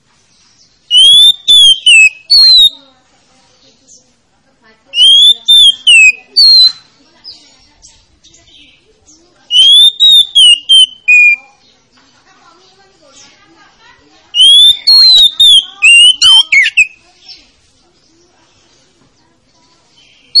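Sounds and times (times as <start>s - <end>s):
Oriental magpie-robin song of bright whistled phrases: 0.3s - 2.8s, 4.9s - 8.8s, 9.5s - 11.7s, 14.4s - 17.4s, 19.9s - 20.3s.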